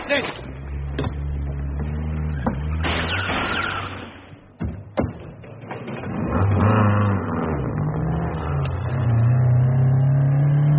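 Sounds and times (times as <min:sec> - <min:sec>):
knocks and thumps: 0:00.2 - 0:06.6
getaway car engine idling then revving and speeding off: 0:00.4 - 0:04.3, 0:05.5 - 0:10.7.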